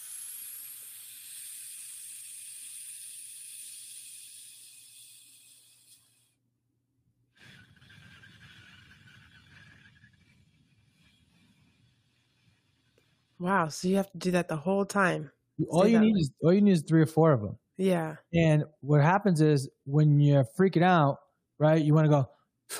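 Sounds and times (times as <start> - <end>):
pursed-lip breathing, air pushed out through tightly restricted lips: 0.0 - 6.4
speech: 13.4 - 22.7.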